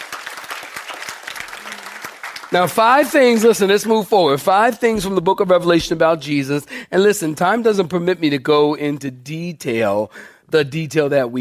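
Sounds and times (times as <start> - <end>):
audience clapping hands: 0.0 - 4.0
speech: 2.5 - 11.4.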